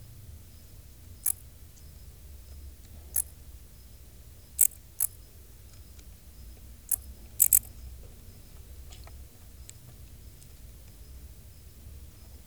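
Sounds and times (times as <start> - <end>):
dark bush-cricket chirping: 0.3 - 12.4.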